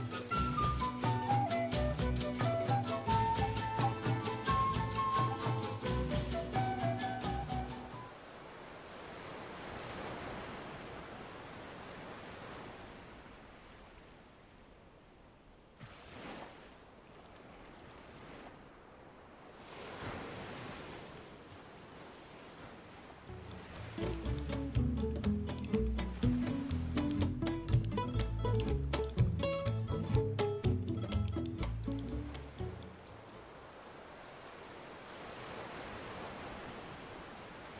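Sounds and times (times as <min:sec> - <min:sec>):
waves in South America: 0:00.0 - 0:37.7.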